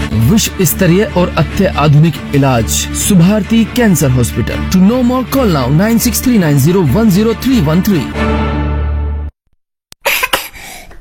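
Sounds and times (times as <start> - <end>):
speech: 0.2 - 8.4
child coughing: 10.0 - 10.9.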